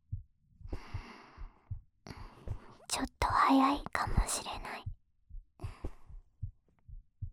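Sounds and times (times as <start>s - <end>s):
faint heartbeat: 0.0s - 7.3s
speech: 3.0s - 4.9s.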